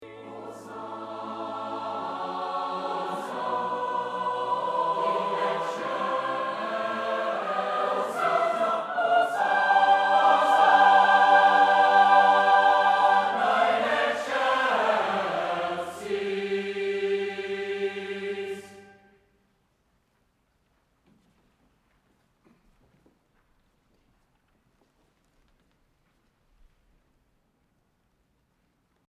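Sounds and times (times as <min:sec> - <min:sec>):
choir singing a mass: 0:00.0 - 0:19.4.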